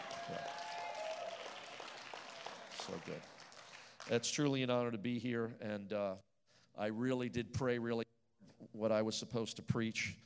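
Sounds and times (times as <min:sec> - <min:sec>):
audience applause and hand clapping: 0:00.0 - 0:04.2
speech: 0:00.3 - 0:00.6, 0:02.9 - 0:03.4, 0:04.0 - 0:08.0, 0:08.8 - 0:10.2.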